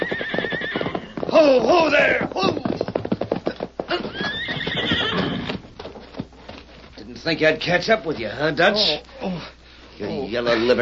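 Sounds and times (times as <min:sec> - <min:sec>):
horse whinnying: 0:00.0 - 0:02.8, 0:03.9 - 0:05.6
hooves clip-clopping: 0:00.0 - 0:08.9
speech: 0:01.3 - 0:02.6, 0:07.2 - 0:10.7.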